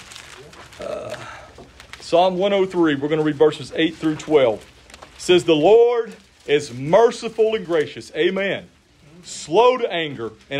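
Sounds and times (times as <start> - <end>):
Bible pages turning: 0.0 - 8.4
speech: 0.4 - 4.7, 5.3 - 10.5.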